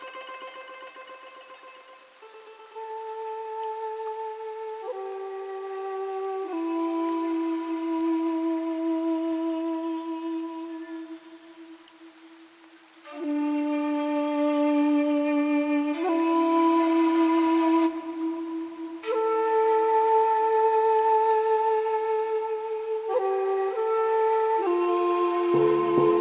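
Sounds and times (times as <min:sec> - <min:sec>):
music: 0:00.0 - 0:26.1
temple ambience: 0:25.5 - 0:26.1.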